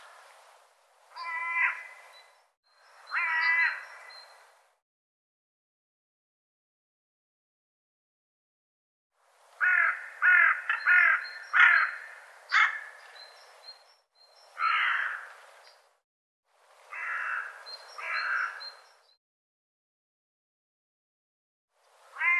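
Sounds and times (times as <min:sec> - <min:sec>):
bird calling with rough grating caws: 0:01.1 - 0:02.3, 0:03.1 - 0:04.3, 0:09.6 - 0:13.0, 0:14.6 - 0:15.4, 0:16.9 - 0:18.9, 0:22.1 - 0:22.3.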